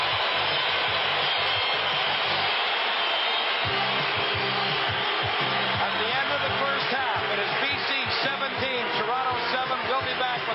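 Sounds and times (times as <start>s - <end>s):
stadium crowd roaring: 0.0s - 10.5s.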